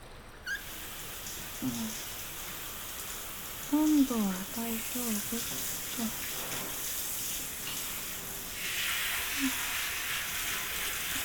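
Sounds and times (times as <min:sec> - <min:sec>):
squeaky chirps: 0:00.4 - 0:00.9
shower water running: 0:00.5 - 0:11.2
speech: 0:01.6 - 0:02.1, 0:03.7 - 0:06.3.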